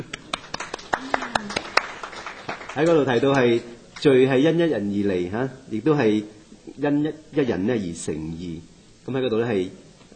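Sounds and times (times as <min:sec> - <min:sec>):
people clapping at a Bible study gathering: 0:00.0 - 0:04.1
speech: 0:02.8 - 0:09.8.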